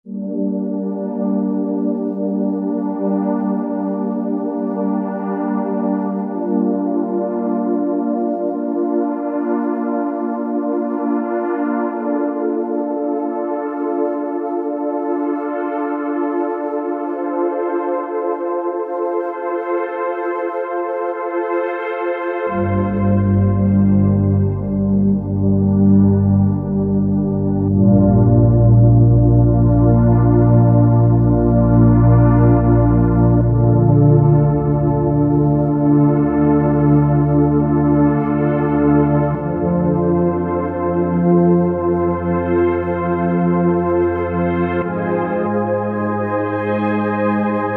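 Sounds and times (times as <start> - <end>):
Roland V-Synth synthesizer: 0.0 - 47.7.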